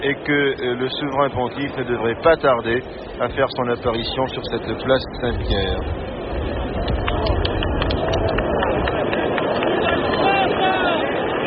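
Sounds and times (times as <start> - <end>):
speech: 0.1 - 7.5
crowd applauding in Saint Peter's Square for Paul VI: 6.4 - 11.4.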